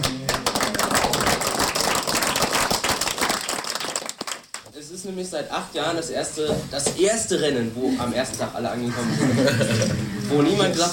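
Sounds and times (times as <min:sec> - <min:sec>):
applause from a group: 0:00.0 - 0:04.7
speech: 0:05.0 - 0:10.9
laughter: 0:08.8 - 0:10.3.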